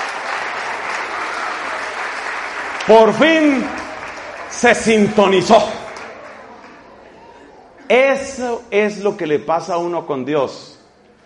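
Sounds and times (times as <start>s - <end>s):
audience applauding for a Colombian cyclist: 0.0s - 7.3s
speech: 2.9s - 3.8s, 4.5s - 5.8s, 7.9s - 10.8s.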